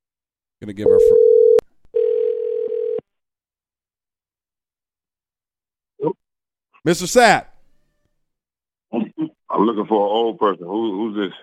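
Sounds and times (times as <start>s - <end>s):
speech: 0.6s - 1.6s, 6.8s - 7.5s, 9.6s - 11.4s
telephone dial tone placing a call: 0.9s - 3.0s.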